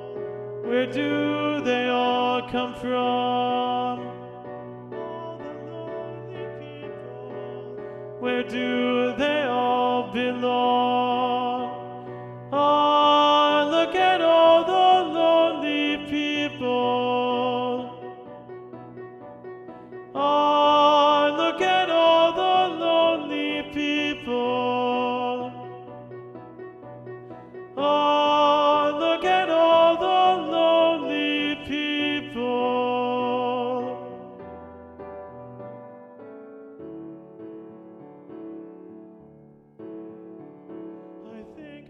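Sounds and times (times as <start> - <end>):
SATB choir singing with tenor predominant: 0.0 - 18.6, 20.1 - 26.3, 27.6 - 34.4.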